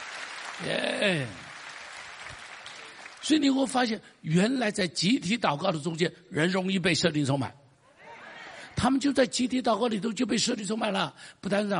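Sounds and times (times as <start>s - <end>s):
audience applause: 0.0s - 3.4s
speech: 0.6s - 1.4s, 3.3s - 7.6s, 8.8s - 11.7s.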